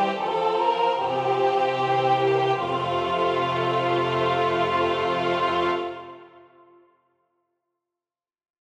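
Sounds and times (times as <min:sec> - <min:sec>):
soprano singing: 0:00.0 - 0:06.5.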